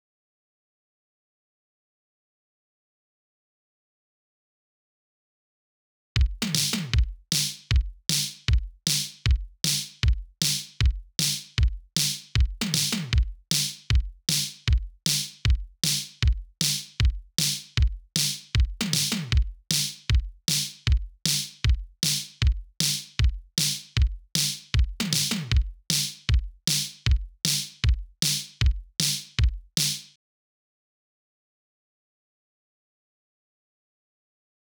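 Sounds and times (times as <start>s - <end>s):
main drums: 6.2s - 30.2s.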